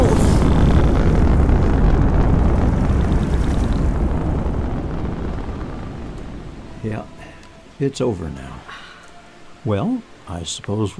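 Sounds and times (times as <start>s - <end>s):
alien spaceship blasting off from Earth, radio-drama effect: 0.0s - 7.2s
speech: 7.8s - 8.5s, 9.6s - 10.9s.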